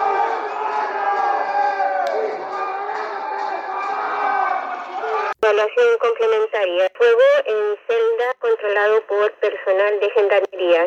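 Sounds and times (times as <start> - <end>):
prisoners shouting during prison fire: 0.0 - 5.4
speech: 5.7 - 10.8.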